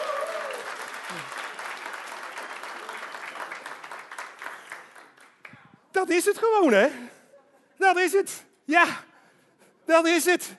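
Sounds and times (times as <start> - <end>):
applause: 0.0 - 5.8
speech: 6.0 - 7.1, 7.8 - 9.1, 9.9 - 10.5.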